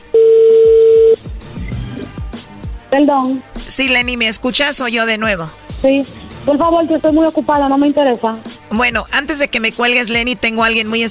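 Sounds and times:
electronic telephone tone: 0.0 - 1.2
speech: 2.9 - 11.0.

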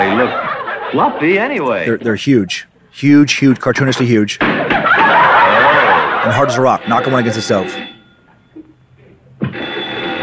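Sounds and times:
laughter: 0.0 - 1.8, 4.6 - 7.5
speech: 0.0 - 5.2, 6.2 - 8.0
old rotary phone ringing: 5.1 - 8.9, 9.5 - 10.2.

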